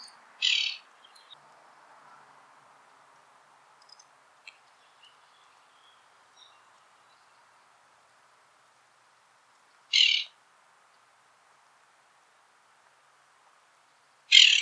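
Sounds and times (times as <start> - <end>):
Williamson's sapsucker Sphyrapicus thyroideus calling in Montana: 0.0 - 1.4, 9.9 - 10.4, 14.3 - 14.6.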